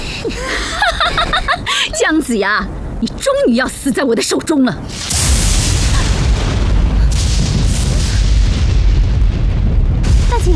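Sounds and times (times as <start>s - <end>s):
laughter: 0.3s - 2.0s
speech: 2.1s - 5.1s
thunder: 4.9s - 10.5s.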